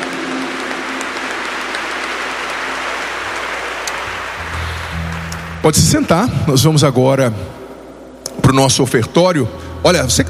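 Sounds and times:
audience applauding: 0:00.0 - 0:06.2
speech: 0:05.6 - 0:07.6, 0:08.5 - 0:10.2.

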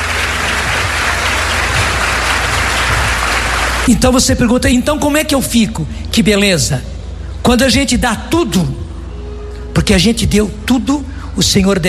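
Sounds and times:
audience applause: 0:00.0 - 0:03.9
speech: 0:03.9 - 0:06.9, 0:07.5 - 0:08.8, 0:09.8 - 0:11.8.

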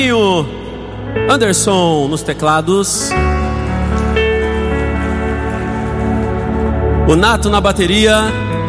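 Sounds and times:
speech: 0:00.0 - 0:00.6, 0:01.2 - 0:03.4, 0:07.1 - 0:08.5
audience applause: 0:04.0 - 0:07.2.

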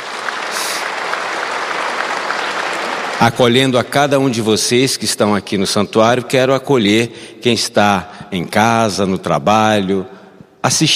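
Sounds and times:
audience applause: 0:00.0 - 0:03.8
speech: 0:03.2 - 0:10.9.

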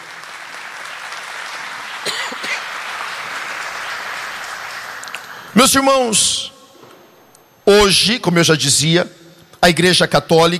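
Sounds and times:
audience applauding: 0:00.0 - 0:05.6
speech: 0:05.6 - 0:06.5, 0:07.7 - 0:10.5.

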